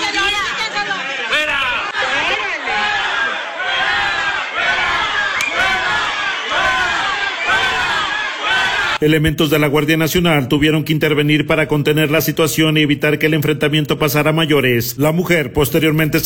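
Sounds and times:
people shouting and protesting at an assembly: 0:00.0 - 0:09.0
speech: 0:09.0 - 0:16.2.

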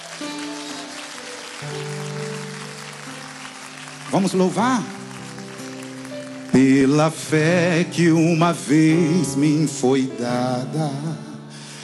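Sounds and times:
audience applause: 0:00.0 - 0:08.8
speech: 0:04.1 - 0:05.0, 0:06.5 - 0:11.3.

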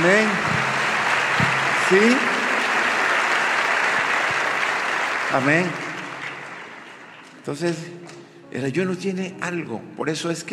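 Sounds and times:
church congregation applauding during a service: 0:00.0 - 0:07.8
speech: 0:01.9 - 0:02.3, 0:05.3 - 0:05.8, 0:07.4 - 0:10.5.

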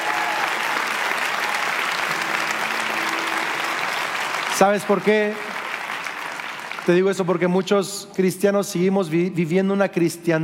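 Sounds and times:
church audience applauding: 0:00.0 - 0:07.6
speech: 0:04.6 - 0:05.4, 0:06.9 - 0:10.4.

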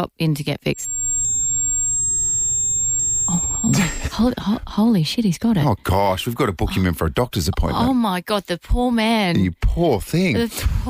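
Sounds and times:
speech: 0:00.0 - 0:00.9, 0:03.6 - 0:10.8
high-pitched ringing tone: 0:00.8 - 0:04.2
low hum: 0:00.8 - 0:04.8.

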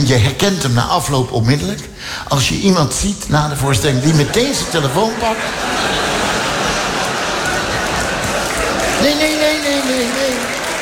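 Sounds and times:
speech: 0:00.1 - 0:06.2, 0:09.0 - 0:10.6
laughter: 0:03.9 - 0:10.7
large crowd applauding: 0:05.5 - 0:10.7.

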